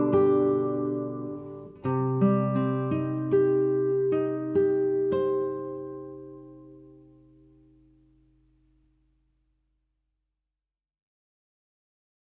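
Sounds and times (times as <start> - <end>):
melancholic guitar piece: 0.0 - 8.5.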